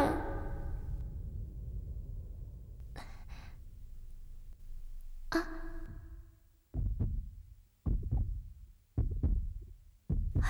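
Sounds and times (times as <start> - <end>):
faint low rumbling hum: 0.0 - 7.1
deep heartbeat thumping: 0.0 - 10.4.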